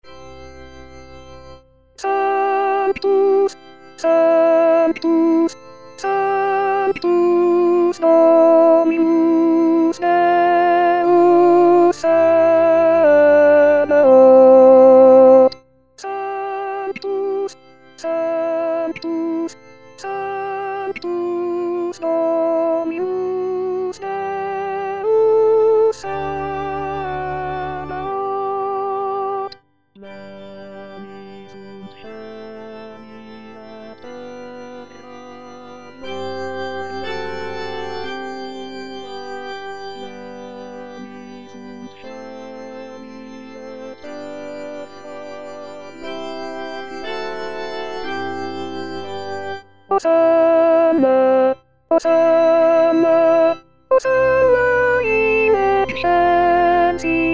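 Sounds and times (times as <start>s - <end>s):
alto voice singing a sanctus: 2.0s - 33.1s, 49.9s - 57.3s.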